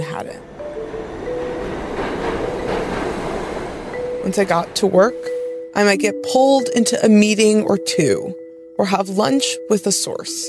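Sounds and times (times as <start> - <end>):
commuter train rumbling on rails heard from inside the car: 0.0 - 6.0
speech: 0.2 - 1.0, 4.2 - 10.4.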